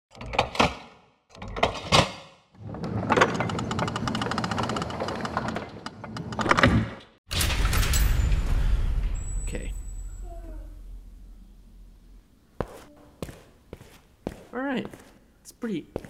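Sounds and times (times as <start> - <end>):
heavy vault door opening sound effect: 1.4 - 11.5
speech: 15.6 - 16.0.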